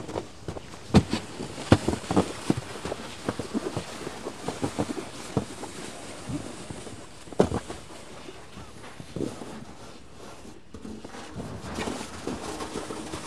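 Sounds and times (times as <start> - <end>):
snow being cleared off a roof at Muraroku-suke: 0.0 - 13.2.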